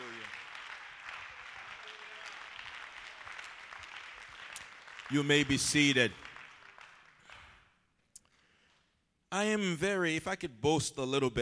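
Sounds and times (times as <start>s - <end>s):
audience clapping hands: 0.0s - 8.9s
speech: 5.1s - 6.2s, 9.4s - 11.4s.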